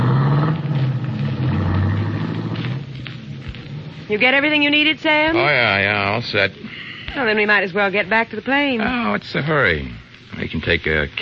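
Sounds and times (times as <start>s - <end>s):
limousine driving off toward the highway: 0.0s - 4.1s
speech: 4.1s - 11.2s.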